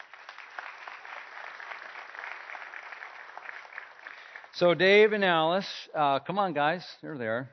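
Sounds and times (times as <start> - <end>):
audience applause: 0.0 - 5.1
speech: 4.6 - 7.5.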